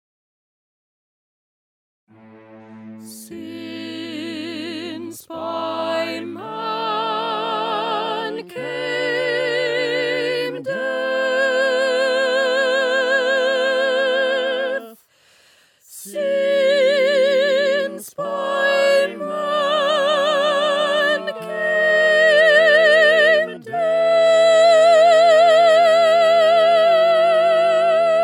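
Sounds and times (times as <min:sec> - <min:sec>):
soprano singing: 0:02.2 - 0:15.1, 0:15.9 - 0:28.2.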